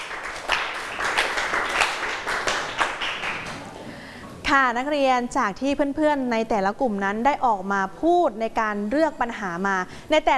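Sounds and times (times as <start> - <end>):
students clapping: 0.0 - 3.8
speech: 4.5 - 10.3.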